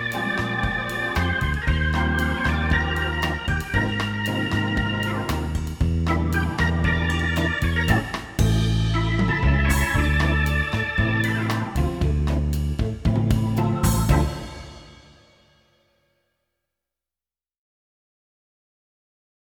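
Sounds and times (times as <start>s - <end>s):
jazzy bossa nova organ: 0.0s - 15.2s.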